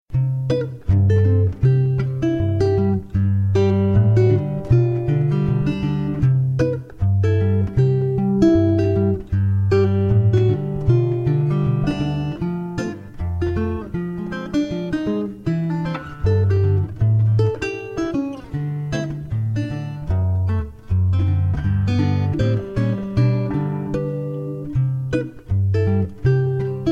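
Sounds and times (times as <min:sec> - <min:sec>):
resonator music: 0:00.1 - 0:26.8.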